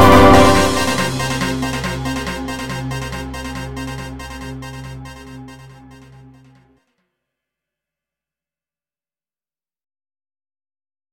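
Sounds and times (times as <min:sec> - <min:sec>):
techno music: 0:00.0 - 0:06.7.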